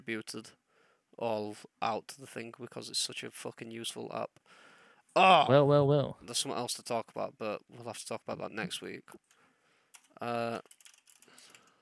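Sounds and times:
speech: 0:00.0 - 0:00.6, 0:01.2 - 0:04.6, 0:05.2 - 0:09.3, 0:10.2 - 0:10.8
typing notes on a computer keyboard: 0:10.0 - 0:11.7.

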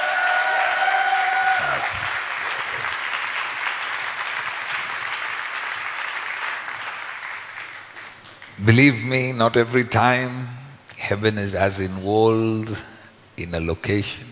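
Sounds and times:
church congregation clapping during an evening service: 0:00.0 - 0:09.2
speech: 0:08.6 - 0:14.3.

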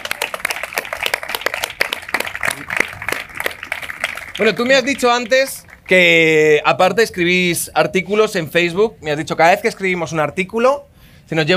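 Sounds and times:
applause: 0:00.0 - 0:06.2
speech: 0:04.4 - 0:11.5.

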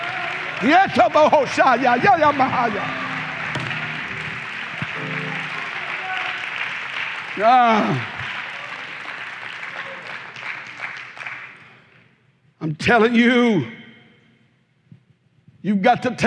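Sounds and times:
audience clapping: 0:00.0 - 0:11.8
speech: 0:00.6 - 0:03.0, 0:07.4 - 0:08.1, 0:12.6 - 0:13.8, 0:15.6 - 0:16.2.

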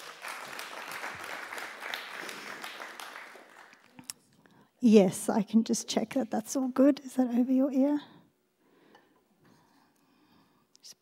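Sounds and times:
audience clapping: 0:00.0 - 0:04.2
speech: 0:04.8 - 0:08.2.

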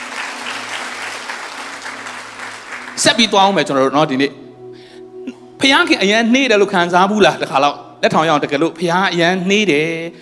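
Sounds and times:
church congregation clapping hands in praise: 0:00.0 - 0:03.7
speech: 0:03.0 - 0:04.4, 0:05.6 - 0:10.2.

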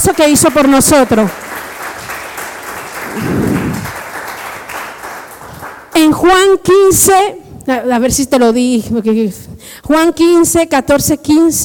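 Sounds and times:
speech: 0:00.1 - 0:01.4, 0:06.0 - 0:11.6
audience applause: 0:01.2 - 0:05.9.

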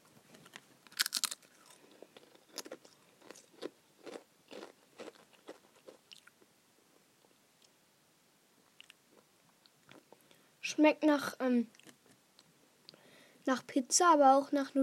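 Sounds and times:
pizza-flavoured Pringles crisps crunching: 0:00.3 - 0:06.3
speech: 0:10.8 - 0:11.8, 0:13.5 - 0:14.8.

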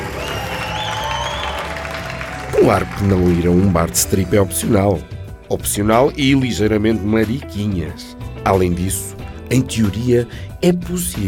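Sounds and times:
faint cheers or whistles: 0:00.0 - 0:02.8
crowd applause: 0:00.0 - 0:04.6
speech: 0:02.6 - 0:11.2.

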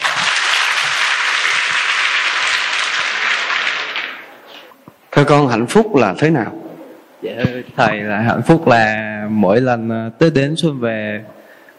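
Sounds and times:
audience applause: 0:00.0 - 0:04.3
speech: 0:05.2 - 0:06.6, 0:07.2 - 0:11.4.

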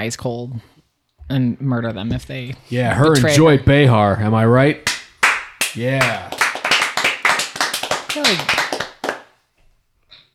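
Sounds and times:
speech: 0:00.0 - 0:00.7, 0:01.3 - 0:04.9, 0:05.8 - 0:06.4, 0:08.2 - 0:08.6
applause: 0:04.9 - 0:09.4.

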